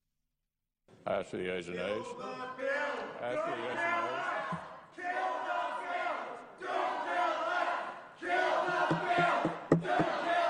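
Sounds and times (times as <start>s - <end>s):
speech: 1.0s - 4.1s
lawmakers shouting and chanting in legislative chamber: 1.7s - 10.4s
sharp knocks or bangs: 8.8s - 10.2s.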